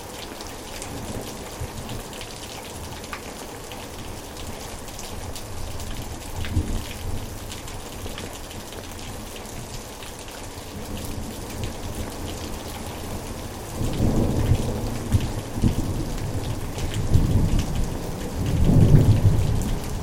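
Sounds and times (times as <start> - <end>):
rain falling in a backyard: 0.0 - 20.0
thunder rumbling: 13.8 - 20.0.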